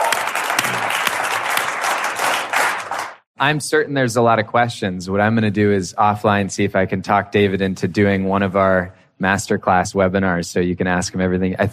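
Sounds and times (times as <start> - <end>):
audience round of applause: 0.0 - 3.2
speech: 3.4 - 11.7.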